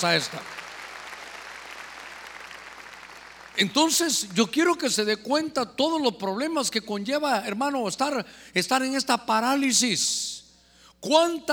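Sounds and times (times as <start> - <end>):
speech: 0.0 - 0.6, 3.6 - 10.4, 11.0 - 11.5
audience clapping loudly: 0.0 - 4.4.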